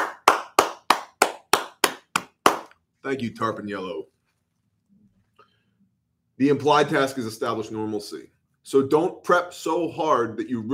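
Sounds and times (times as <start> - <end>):
hands clapping: 0.0 - 2.8
speech: 3.0 - 4.2, 6.4 - 10.7.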